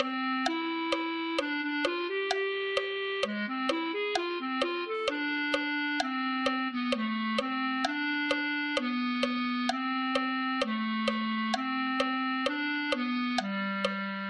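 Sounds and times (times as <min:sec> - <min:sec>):
clarinet: 0:00.0 - 0:14.2.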